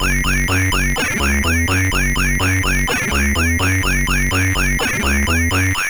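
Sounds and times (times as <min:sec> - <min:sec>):
MOS6581R4 sound chip harmonic tone: 0:00.0 - 0:05.8.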